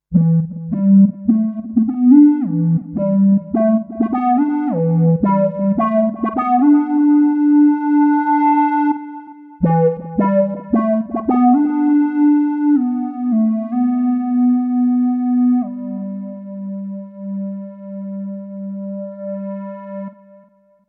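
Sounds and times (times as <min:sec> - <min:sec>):
Kurzweil SP6 lead synth: 0:00.1 - 0:19.6.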